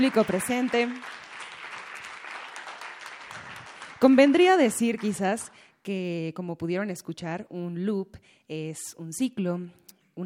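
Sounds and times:
speech: 0.0 - 1.2, 4.0 - 10.2
audience applause: 0.0 - 5.5.

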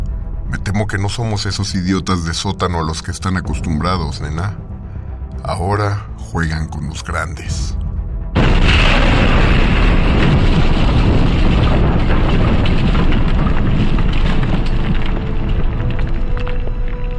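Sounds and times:
speech: 0.7 - 4.7, 5.4 - 7.8
loud explosion: 8.3 - 16.7
crackling debris: 8.3 - 17.1.

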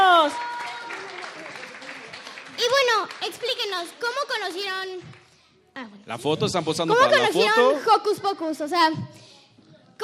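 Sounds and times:
applause: 0.0 - 5.4
speech: 3.7 - 5.2, 5.8 - 9.3.

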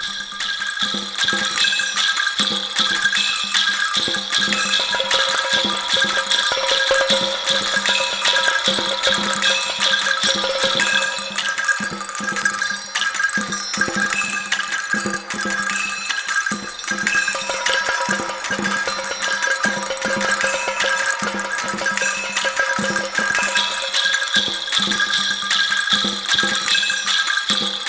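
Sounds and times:
robot percussion on bells: 0.0 - 27.8
robot percussion on drums: 0.0 - 27.8
robot percussion on maracas: 0.0 - 27.8.

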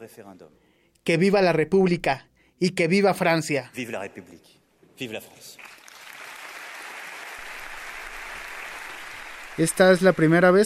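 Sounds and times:
speech: 0.0 - 5.8, 9.6 - 10.6
legislators applauding after a speech: 5.6 - 10.6.

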